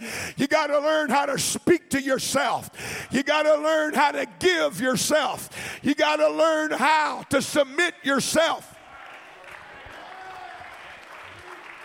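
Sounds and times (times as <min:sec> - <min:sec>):
speech: 0:00.3 - 0:08.7
audience clapping hands: 0:08.8 - 0:11.8.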